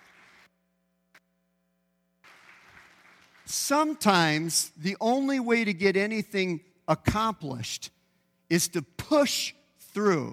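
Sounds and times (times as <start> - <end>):
church congregation applause given as a clap offering: 0.0 - 0.5, 2.2 - 4.4
low electrical hum: 0.0 - 10.3
speech: 3.5 - 10.3.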